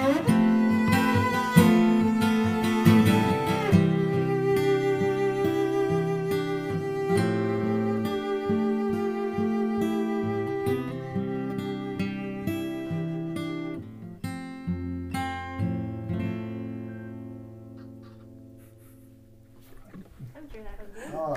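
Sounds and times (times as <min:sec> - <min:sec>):
cello: 0:00.0 - 0:14.9
guitar: 0:00.0 - 0:21.3.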